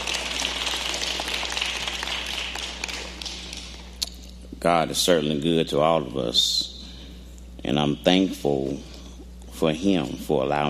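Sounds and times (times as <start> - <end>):
audience hand clapping: 0.0 - 4.2
speech: 4.6 - 6.7, 7.6 - 8.9, 9.6 - 10.6.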